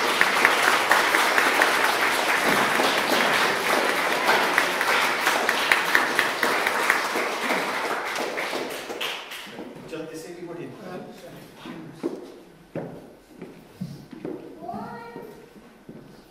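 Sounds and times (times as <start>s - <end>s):
audience applause: 0.0s - 9.6s.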